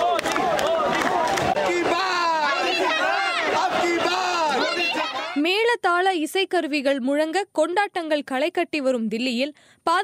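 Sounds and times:
crowd of thousands chanting slogans at a Narendra Modi victory procession: 0.0s - 5.4s
speech: 5.8s - 10.0s.

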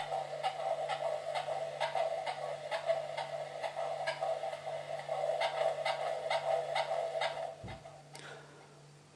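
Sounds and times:
baby's heartbeat: 0.0s - 8.0s.

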